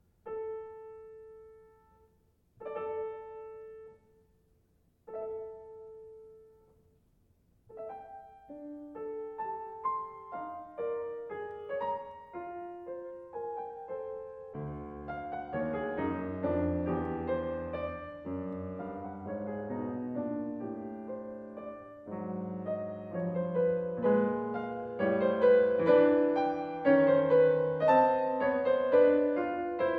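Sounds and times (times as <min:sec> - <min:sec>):
trombone and piano playing an allegretto grazioso sonata: 0:07.8 - 0:29.9.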